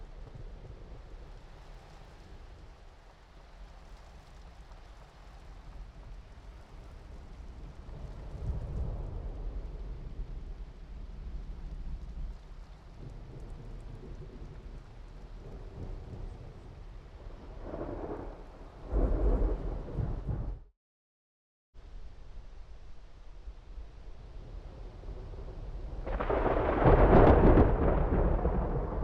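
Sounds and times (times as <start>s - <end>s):
distant rolling thunder: 7.7s - 20.7s, 24.3s - 29.0s.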